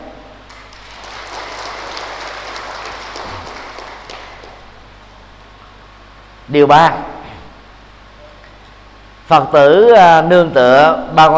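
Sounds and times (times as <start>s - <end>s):
crowd applause: 0.5s - 4.8s
speech: 6.5s - 7.1s, 9.3s - 11.3s.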